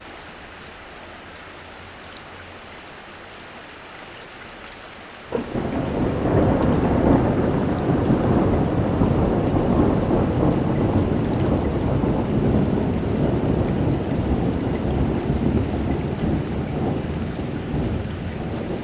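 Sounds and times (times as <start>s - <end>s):
light rain: 0.0s - 18.8s
thunder: 5.3s - 18.8s.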